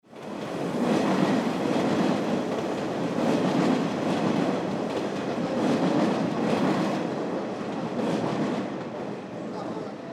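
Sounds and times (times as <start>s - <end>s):
train: 0.0s - 10.1s.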